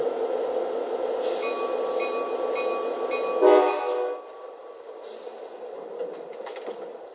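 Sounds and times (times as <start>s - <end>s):
Capitol Corridor passenger train from San Jose arriving at Richmond station: 0.0s - 7.1s
Capitol Corridor passenger train horn-like tones: 3.4s - 4.3s.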